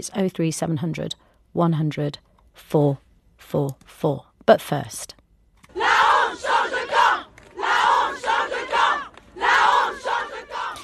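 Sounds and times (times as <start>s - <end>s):
speech: 0.0s - 5.2s
crowd of mostly female voices chanting outside a court: 5.7s - 10.8s.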